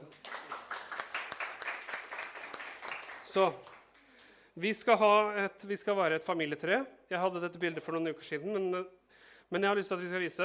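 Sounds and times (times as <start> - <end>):
audience applause: 0.0 - 3.9
speech: 3.3 - 3.7, 4.6 - 10.4.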